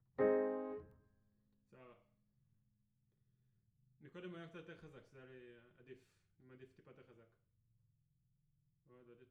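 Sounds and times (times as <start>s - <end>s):
piano note A: 0.0s - 0.9s.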